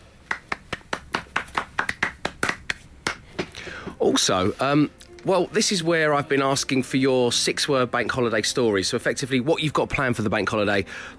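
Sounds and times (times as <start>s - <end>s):
round of applause: 0.3s - 2.8s
speech: 4.0s - 11.1s.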